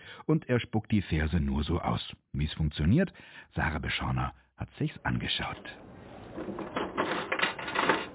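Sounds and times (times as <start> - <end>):
speech: 0.3 - 7.3
coin dropped into a poem capsule vending machine: 6.3 - 8.1.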